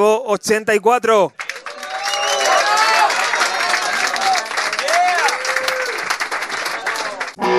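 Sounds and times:
speech: 0:00.0 - 0:01.4
loud applause: 0:01.4 - 0:07.4.

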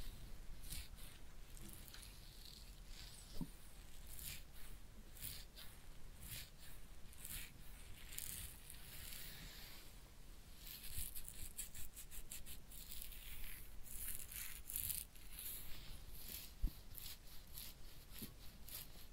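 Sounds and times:
soft scratching and rubbing strokes of head massage and ear cleaning: 0:00.0 - 0:19.1.

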